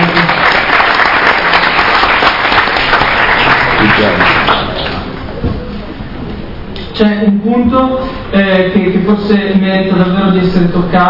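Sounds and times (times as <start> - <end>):
audience applause: 0.0 - 5.2
speech: 7.0 - 11.0.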